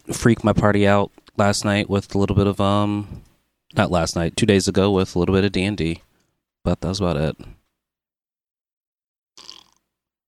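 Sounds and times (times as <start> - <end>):
speech: 0.2 - 7.6
person sipping a drink: 9.4 - 9.8.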